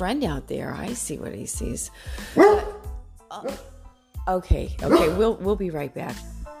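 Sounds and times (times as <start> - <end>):
speech: 0.0 - 2.7, 3.3 - 6.3
dog barking at window: 2.3 - 3.7, 4.8 - 5.3.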